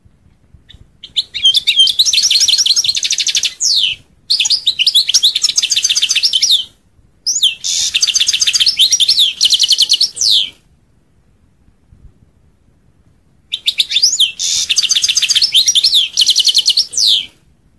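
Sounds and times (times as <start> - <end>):
European goldfinch song: 0.7 - 10.6, 13.5 - 17.4.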